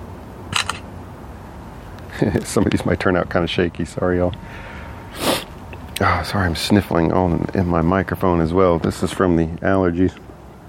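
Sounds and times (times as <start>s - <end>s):
low hum: 0.0s - 10.6s
phone camera shutter clicking while taking a photo: 0.5s - 0.8s
speech: 2.2s - 4.8s, 6.0s - 10.2s.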